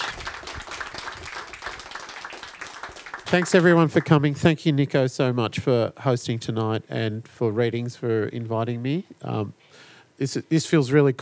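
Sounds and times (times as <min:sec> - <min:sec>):
audience applause: 0:00.0 - 0:04.4
speech: 0:03.3 - 0:11.2.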